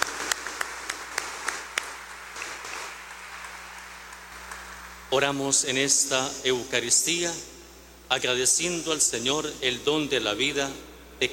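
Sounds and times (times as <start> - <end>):
soft group applause: 0.0 - 5.1
speech: 5.1 - 11.3.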